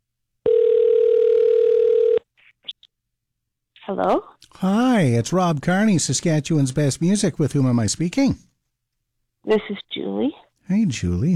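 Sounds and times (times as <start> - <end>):
telephone dial tone: 0.4 - 2.2
speech: 3.9 - 8.5, 9.4 - 11.3.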